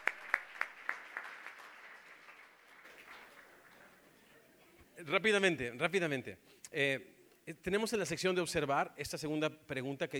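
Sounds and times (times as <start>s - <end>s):
loud applause from students: 0.0s - 4.1s
speech: 5.0s - 10.1s.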